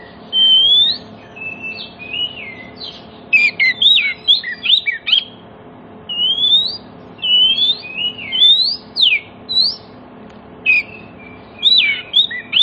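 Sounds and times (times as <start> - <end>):
Oriental magpie-robin whistled song: 0.0 - 5.4, 6.1 - 9.9, 10.6 - 12.6.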